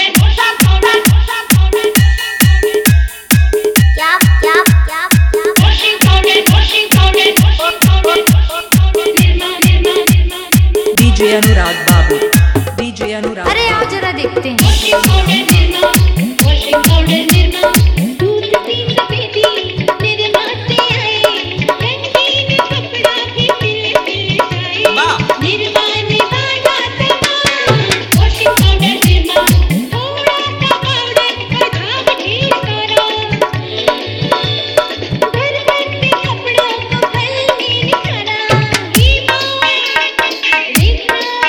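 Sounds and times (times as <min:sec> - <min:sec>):
funny dholki drumming mix: 0:00.2 - 0:41.4.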